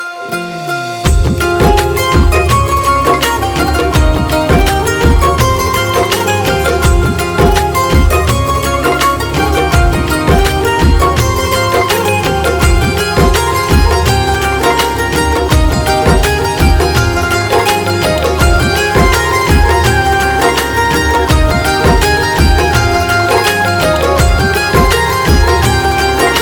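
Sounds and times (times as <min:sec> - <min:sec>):
instrumental ringtone: 0:01.0 - 0:26.4.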